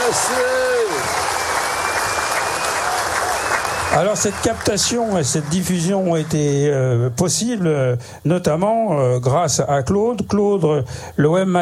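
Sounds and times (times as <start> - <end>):
audience applause: 0.0 - 6.8
speech: 3.9 - 11.6.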